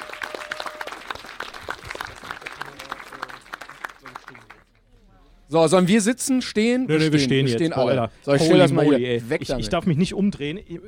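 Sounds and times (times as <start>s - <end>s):
audience applause: 0.0s - 4.7s
speech: 5.5s - 10.8s.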